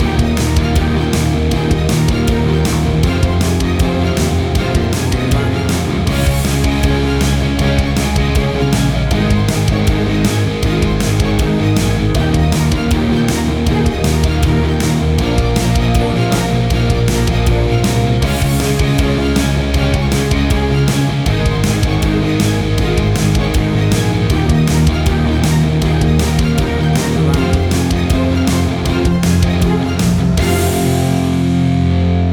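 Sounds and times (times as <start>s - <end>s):
big punk rock orchestrations: 0.0s - 32.3s.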